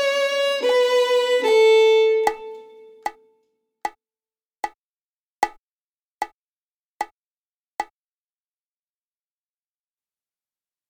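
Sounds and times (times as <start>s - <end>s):
violin imitation playing on the A string: 0.0s - 3.3s.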